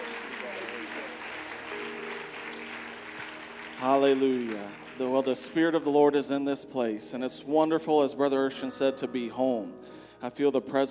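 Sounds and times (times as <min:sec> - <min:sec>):
church congregation applauding to welcome guests back home: 0:00.0 - 0:06.6
speech: 0:03.8 - 0:10.9.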